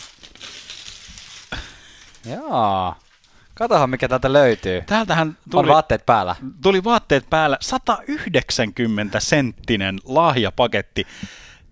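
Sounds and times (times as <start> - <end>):
paper crumpling: 0.0 - 3.5
speech: 2.2 - 3.0, 3.6 - 11.4.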